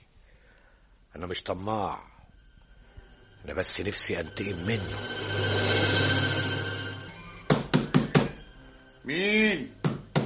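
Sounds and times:
hum: 0.0 - 9.9
speech: 1.2 - 2.1, 3.4 - 6.4, 9.0 - 9.8
knocking on a door in an Egyptian radio drama: 9.8 - 10.2.

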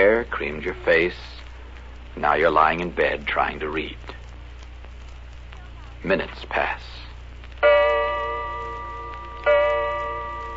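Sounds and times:
speech: 0.0 - 1.4, 2.2 - 4.2, 6.0 - 7.0
old grandfather clock in the hall striking the hour: 7.6 - 10.5.

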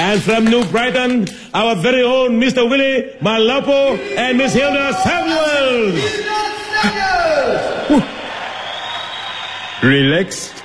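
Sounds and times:
audience applause and cheering: 0.0 - 1.3, 4.0 - 10.6
speech: 0.1 - 8.2, 9.8 - 10.6.

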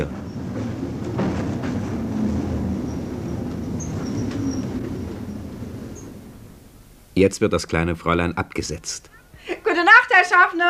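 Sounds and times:
tram driving fast through empty streets: 0.0 - 7.2
faint high metallic squeals and clicks over the track: 2.9 - 5.0
speech: 7.2 - 10.6.

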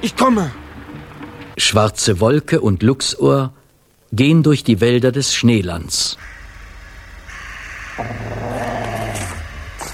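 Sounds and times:
speech: 0.0 - 0.6, 1.6 - 6.4, 8.0 - 8.6
hiss: 0.0 - 9.9
rustle: 5.4 - 9.9
dog growling in snowy woods: 8.0 - 9.9.

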